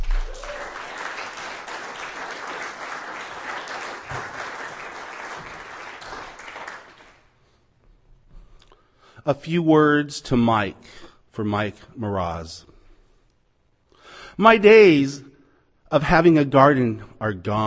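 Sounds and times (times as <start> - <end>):
audience clapping for a poet at a poetry reading: 0.0 - 7.3
speech: 9.2 - 12.7, 14.4 - 15.3, 15.9 - 17.6.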